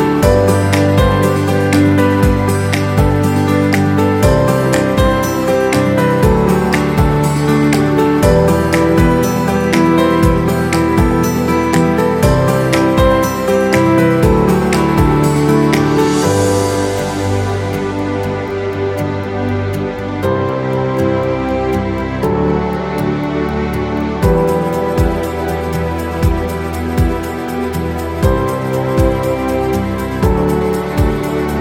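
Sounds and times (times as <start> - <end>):
acoustic guitar commercial music: 0.0 - 31.5.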